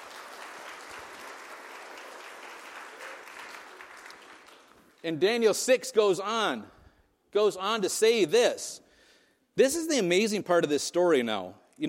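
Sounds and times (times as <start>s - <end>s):
audience applause: 0.0s - 5.0s
speech: 5.0s - 8.8s, 9.6s - 11.8s.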